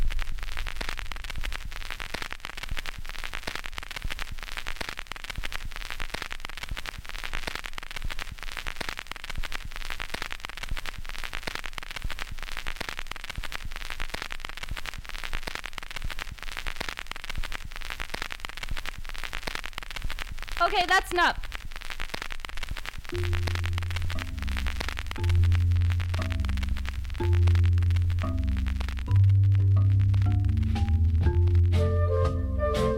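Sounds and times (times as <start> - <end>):
crackle: 0.0 - 32.9
speech: 20.7 - 21.4, 23.1 - 23.5.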